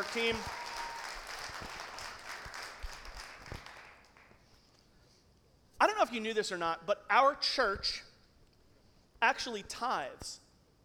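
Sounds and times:
speech: 0:00.0 - 0:00.6, 0:06.1 - 0:08.1, 0:09.2 - 0:10.4
audience clapping: 0:00.0 - 0:04.5.

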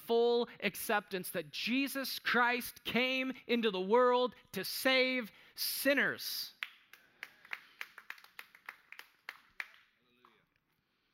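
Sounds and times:
speech: 0:00.1 - 0:06.6
single person clapping in the front row: 0:06.6 - 0:10.4.

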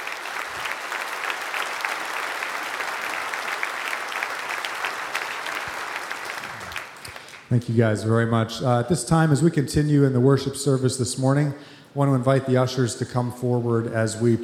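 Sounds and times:
crowd clapping: 0:00.0 - 0:07.5
speech: 0:07.5 - 0:14.4.

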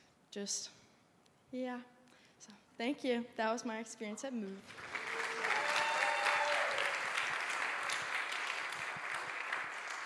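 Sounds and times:
speech: 0:00.4 - 0:00.8, 0:01.5 - 0:05.0
crowd applause: 0:04.7 - 0:10.0.

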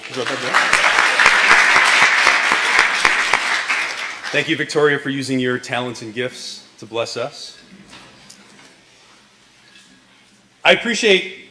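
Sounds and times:
audience applause: 0:00.0 - 0:04.6
speech: 0:00.1 - 0:01.0, 0:04.3 - 0:07.8, 0:10.7 - 0:11.4.

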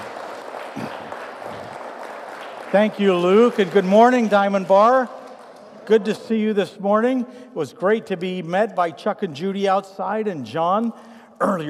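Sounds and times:
church congregation applause welcoming a pastor: 0:00.0 - 0:07.2
speech: 0:02.7 - 0:05.2, 0:05.9 - 0:11.6.

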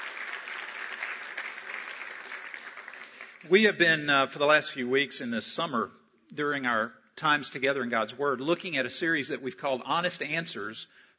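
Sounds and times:
church congregation applauding to welcome a returning member: 0:00.0 - 0:04.0
speech: 0:03.4 - 0:11.1.

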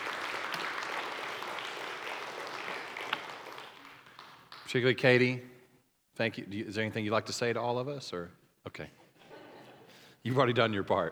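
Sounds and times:
audience applause: 0:00.0 - 0:04.7
speech: 0:04.7 - 0:05.5, 0:06.2 - 0:09.0, 0:10.2 - 0:11.1.

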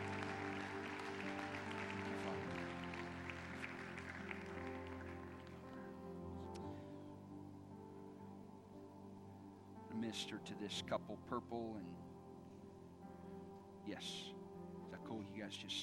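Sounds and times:
audience clapping: 0:00.0 - 0:06.0
sustained musical chord: 0:00.0 - 0:15.6
speech: 0:10.0 - 0:12.1, 0:13.8 - 0:15.8.

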